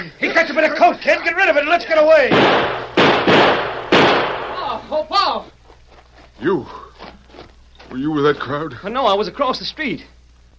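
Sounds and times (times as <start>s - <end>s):
speech: 0.0s - 3.7s, 4.9s - 5.5s, 6.4s - 6.8s, 7.9s - 10.1s
gunshots: 2.3s - 4.6s.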